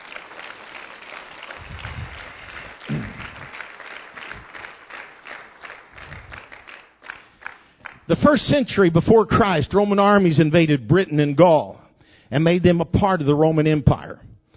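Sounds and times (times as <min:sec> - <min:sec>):
audience hand clapping: 0:00.0 - 0:08.2
speech: 0:08.1 - 0:14.3.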